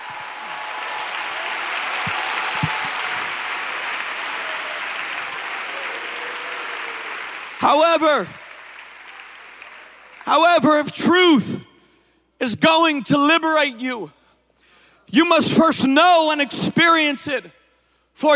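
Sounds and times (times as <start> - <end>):
people clapping hands: 0.0 - 10.9
speech: 7.6 - 8.4, 10.3 - 11.6, 12.4 - 14.2, 15.1 - 17.6, 18.2 - 18.3.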